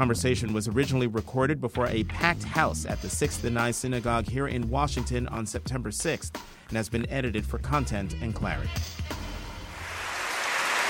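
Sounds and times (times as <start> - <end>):
speech: 0.0 - 9.1
crowd applause: 9.7 - 10.8.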